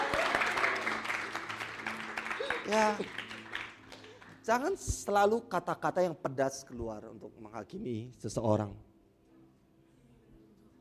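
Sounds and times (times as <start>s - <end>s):
audience applause: 0.0s - 4.4s
speech: 2.7s - 3.2s, 4.5s - 8.9s.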